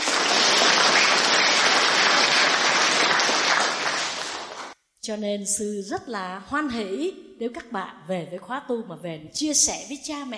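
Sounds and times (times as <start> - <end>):
audience applause at a meditation retreat talk: 0.0 - 4.8
speech: 5.1 - 10.3.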